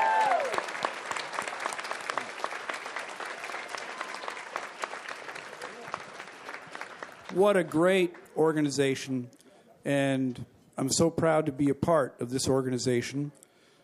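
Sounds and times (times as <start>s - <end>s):
audience applause at the Washington Council of the Blind anniversary banquet: 0.0s - 8.8s
speech: 7.4s - 13.4s.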